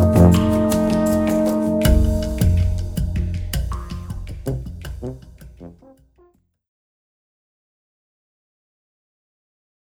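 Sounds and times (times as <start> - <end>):
trance music: 0.0 - 5.8
alphorn in trance music: 0.0 - 5.9.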